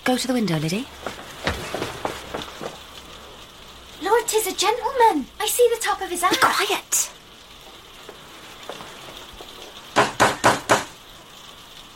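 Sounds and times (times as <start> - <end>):
speech: 0.0 - 1.2, 4.4 - 7.1
faint quiet hiss: 0.0 - 11.9
loud sharp knocking on a door: 1.0 - 2.4, 10.0 - 11.0.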